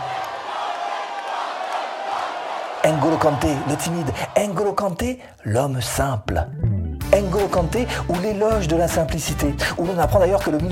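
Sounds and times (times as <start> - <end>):
large football crowd chanting a player's name in unison: 0.0 - 4.6
speech: 2.8 - 6.6, 7.2 - 10.7.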